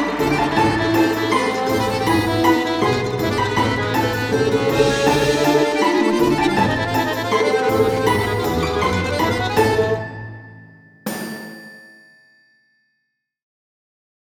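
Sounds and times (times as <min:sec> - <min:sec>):
Russian comedy cartoon soundtrack: 0:00.0 - 0:10.4.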